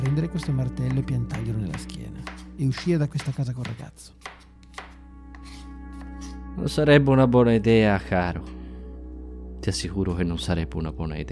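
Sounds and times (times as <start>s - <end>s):
knife chopping vegetables on a cutting board: 0.0s - 6.3s
speech: 0.3s - 4.3s, 6.6s - 8.6s, 9.6s - 11.3s.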